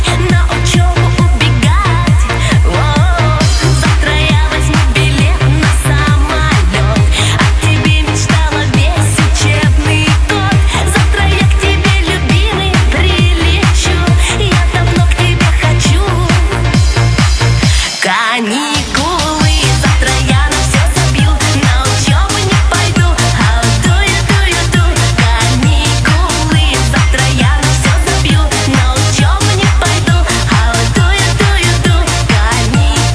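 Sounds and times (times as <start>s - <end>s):
music: 0.0s - 33.1s.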